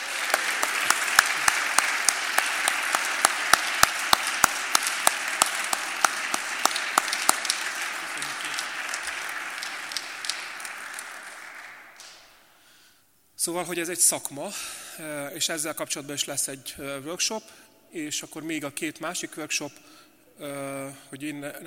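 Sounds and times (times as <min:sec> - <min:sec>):
audience applause: 0:00.0 - 0:12.4
speech: 0:13.4 - 0:21.6.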